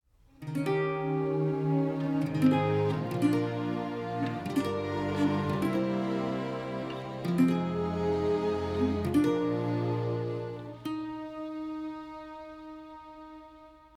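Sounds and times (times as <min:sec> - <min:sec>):
instrumental music: 0:00.4 - 0:13.9.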